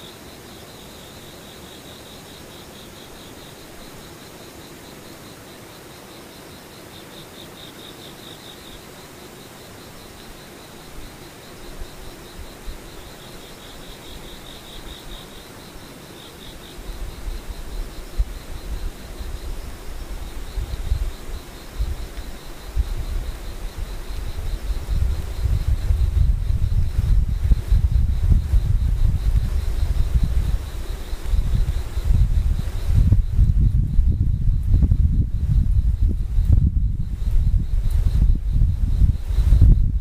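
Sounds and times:
insects trilling outdoors: 0:00.0 - 0:40.0.

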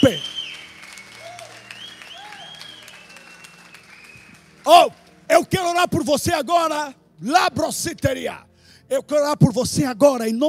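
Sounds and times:
speech: 0:00.0 - 0:00.4, 0:04.7 - 0:10.4
audience applauding: 0:00.0 - 0:05.3.

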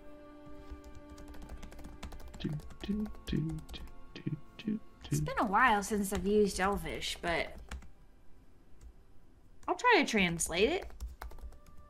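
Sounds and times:
typing on a computer keyboard: 0:00.6 - 0:03.9, 0:06.1 - 0:07.9, 0:10.7 - 0:11.8
speech: 0:02.4 - 0:07.6, 0:09.9 - 0:11.0.

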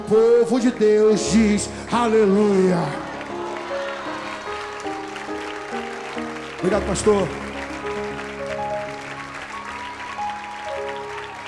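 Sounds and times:
audience applauding: 0:00.0 - 0:11.4
speech: 0:00.1 - 0:03.1, 0:06.6 - 0:07.4.

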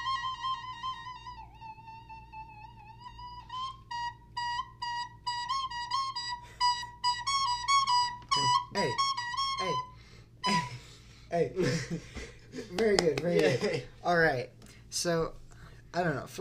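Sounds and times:
recorder melody: 0:00.0 - 0:10.9
speech: 0:08.8 - 0:09.1, 0:11.4 - 0:16.3.

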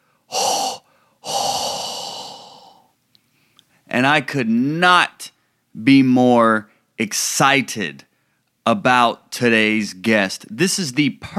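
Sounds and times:
breathing blown into a microphone: 0:00.0 - 0:03.9, 0:08.1 - 0:08.5
speech: 0:04.0 - 0:08.1, 0:08.7 - 0:11.3.

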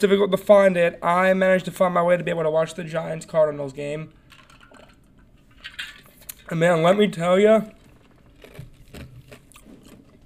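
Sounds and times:
speech: 0:00.0 - 0:04.2, 0:06.5 - 0:07.8
chewing on ice: 0:07.7 - 0:10.2.

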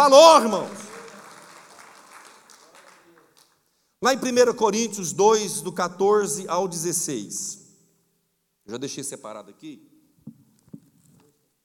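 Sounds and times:
speech: 0:00.0 - 0:00.8, 0:04.0 - 0:07.6, 0:08.7 - 0:09.9
audience applause: 0:00.4 - 0:03.6.

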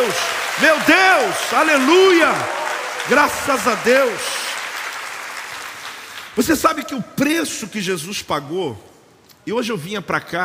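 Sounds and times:
crowd applauding: 0:00.0 - 0:06.7
speech: 0:00.1 - 0:04.4, 0:06.4 - 0:10.4.

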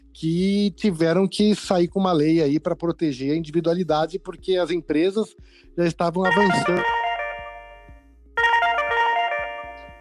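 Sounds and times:
speech: 0:00.2 - 0:07.0
electronic telephone ringtone: 0:06.3 - 0:09.9.

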